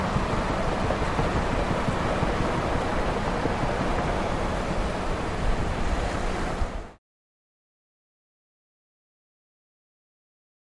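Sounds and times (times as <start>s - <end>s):
car interior on highway: 0.0s - 7.0s.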